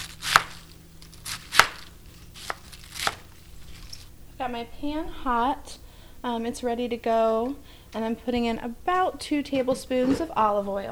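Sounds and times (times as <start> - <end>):
knife chopping quartered cabbage into one-inch chunks: 0.0 - 4.0
speech: 4.4 - 10.8.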